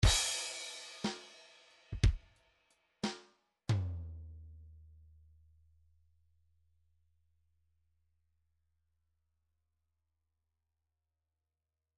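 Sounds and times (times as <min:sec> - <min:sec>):
MIDI file groove in 3/4 time: 0:00.0 - 0:02.2.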